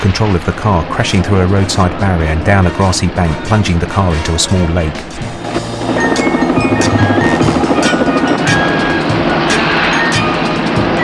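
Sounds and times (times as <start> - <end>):
speech: 0.0 - 6.2
helicopter rotor and engine taking off: 0.3 - 11.0.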